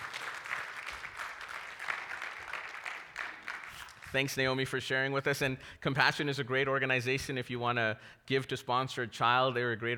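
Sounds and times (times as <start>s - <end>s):
audience applause: 0.0s - 4.2s
speech: 4.1s - 9.9s.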